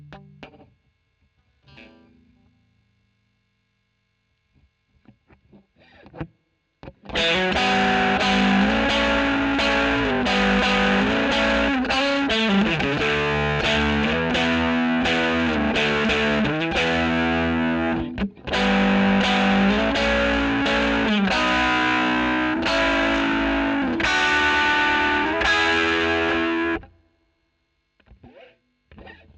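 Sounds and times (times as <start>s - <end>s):
overdriven electric guitar recorded with a Royer microphone: 0.0s - 0.8s, 4.6s - 27.0s, 28.0s - 29.3s.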